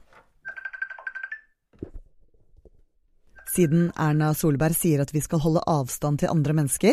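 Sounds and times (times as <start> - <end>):
FaceTime video call warbling ringtone: 0.4 - 1.6, 3.4 - 4.6
speech: 3.6 - 6.9.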